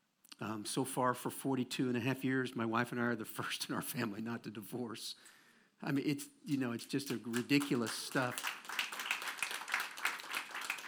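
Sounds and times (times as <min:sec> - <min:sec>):
speech: 0:00.4 - 0:08.6
audience clapping: 0:06.9 - 0:10.8.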